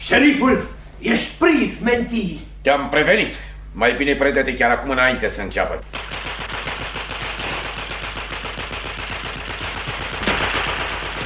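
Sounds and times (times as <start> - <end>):
speech: 0.1 - 6.0
gunfire: 5.9 - 11.2.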